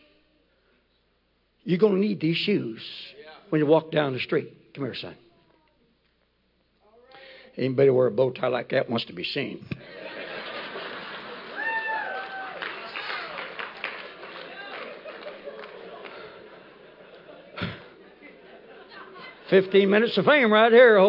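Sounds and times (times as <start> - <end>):
speech: 1.6 - 5.2, 7.6 - 10.0, 19.5 - 21.0
laughter: 9.8 - 11.8, 14.1 - 19.9
audience applause: 10.2 - 18.2
crowd whistle or cheer: 11.5 - 13.5.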